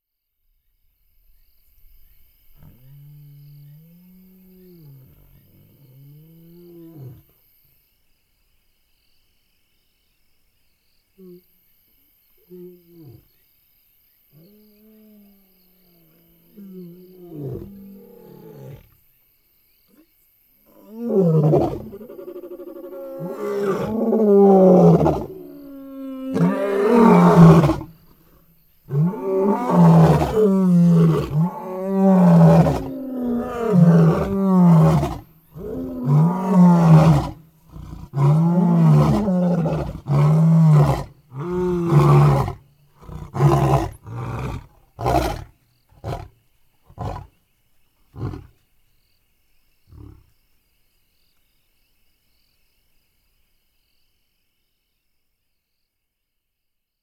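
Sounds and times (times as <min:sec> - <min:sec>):
roar: 0:02.5 - 0:07.4, 0:12.4 - 0:13.4, 0:14.3 - 0:19.0, 0:19.9 - 0:47.4, 0:48.1 - 0:48.6, 0:49.9 - 0:50.3.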